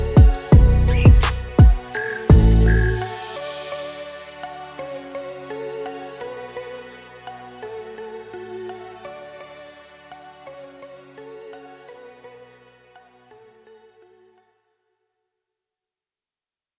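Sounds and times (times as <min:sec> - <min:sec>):
metal music: 0:00.0 - 0:04.1.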